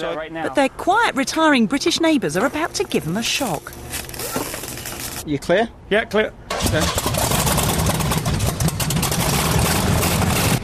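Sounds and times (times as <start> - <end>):
speech: 0.0 - 4.1, 5.2 - 7.2
monster truck engine roaring: 6.6 - 10.6.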